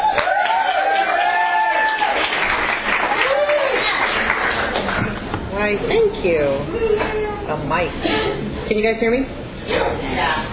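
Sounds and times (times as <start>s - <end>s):
whoops and cheers: 0.0s - 2.4s, 3.0s - 4.0s
audience clapping: 0.0s - 5.4s
speech: 5.7s - 10.5s.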